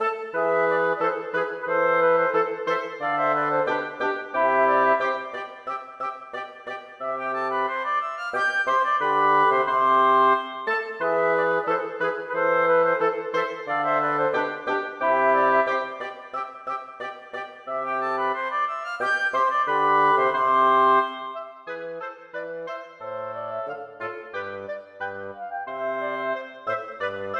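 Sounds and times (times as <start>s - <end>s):
wind quartet playing a gavotte and bourrée without harpsichord: 0.0s - 27.3s.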